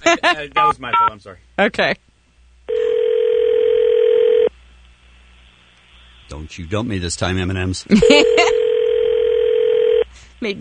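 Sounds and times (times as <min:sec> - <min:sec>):
faint low hum: 0:00.0 - 0:10.5
speech: 0:00.1 - 0:02.1, 0:06.3 - 0:08.5, 0:10.4 - 0:10.5
telephone tone calling the M&M's consumer hotline: 0:02.7 - 0:04.5, 0:08.0 - 0:10.0.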